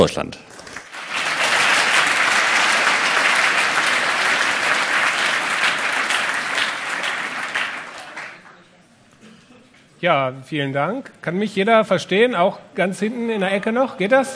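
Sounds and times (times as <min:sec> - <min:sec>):
speech: 0:00.0 - 0:00.6, 0:10.0 - 0:14.3
audience applause: 0:00.6 - 0:08.6.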